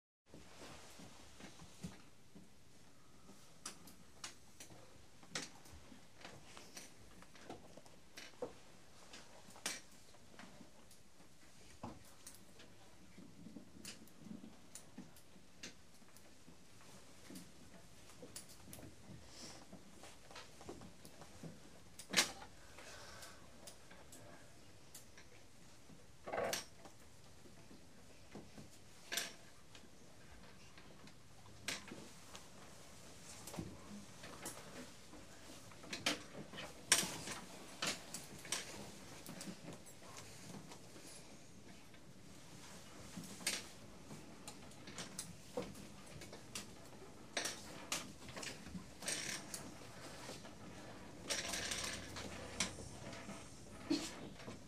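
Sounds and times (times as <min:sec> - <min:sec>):
children rustling stationery: 0:00.3 - 0:54.6.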